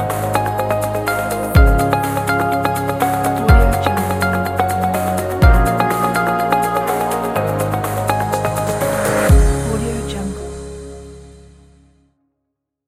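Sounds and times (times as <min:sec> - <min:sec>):
upbeat corporate music: 0:00.0 - 0:11.7.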